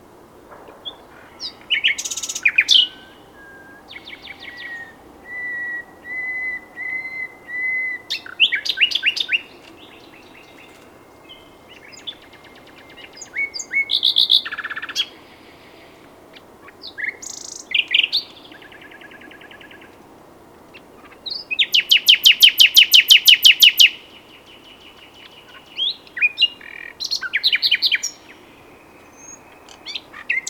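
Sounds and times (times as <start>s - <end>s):
common nightingale singing: 0.0s - 30.4s.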